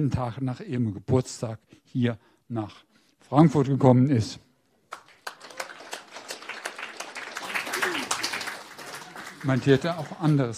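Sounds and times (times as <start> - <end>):
speech: 0.0 - 4.5, 9.4 - 10.5
audience applause: 4.9 - 10.5.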